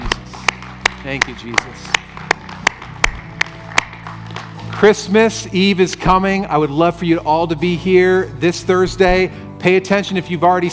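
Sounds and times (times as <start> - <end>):
audience clapping in unison: 0.0 - 5.2
speech: 1.0 - 2.0, 4.8 - 10.7.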